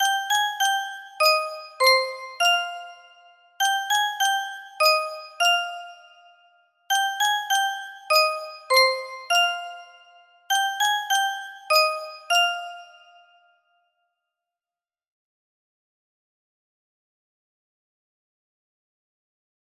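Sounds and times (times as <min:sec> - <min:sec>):
music box: 0:00.0 - 0:13.5.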